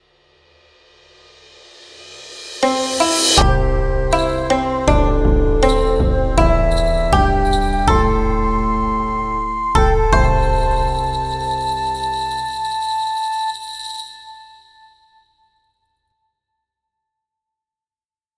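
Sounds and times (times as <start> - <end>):
Japanese-style jingle: 2.6 - 15.0.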